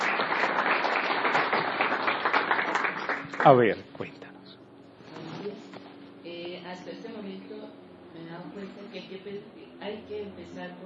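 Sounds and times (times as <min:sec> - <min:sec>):
audience applause: 0:00.0 - 0:03.7
speech: 0:03.4 - 0:04.1.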